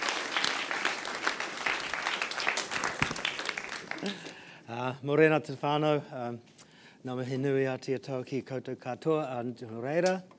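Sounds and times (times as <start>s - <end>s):
audience applauding a guest speaker at a church gathering: 0.0s - 4.4s
speech: 4.0s - 10.3s.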